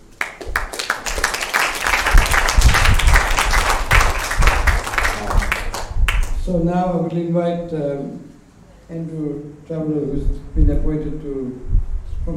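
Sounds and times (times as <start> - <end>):
round of applause: 0.0 - 6.5
speech: 6.5 - 8.3, 8.9 - 12.3.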